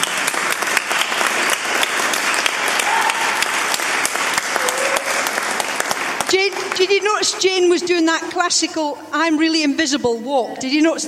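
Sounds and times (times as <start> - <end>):
audience applause: 0.0 - 7.0
speech: 6.3 - 11.0.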